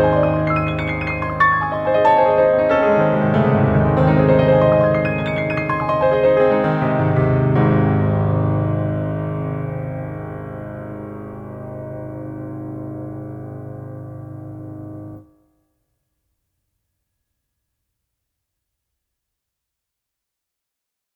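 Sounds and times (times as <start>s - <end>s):
C sharp minor: 0.0s - 15.3s.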